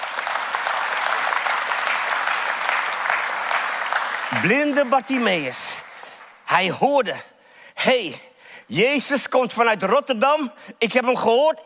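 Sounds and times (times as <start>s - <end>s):
audience applause: 0.0s - 6.5s
speech: 4.4s - 5.8s, 6.5s - 11.6s.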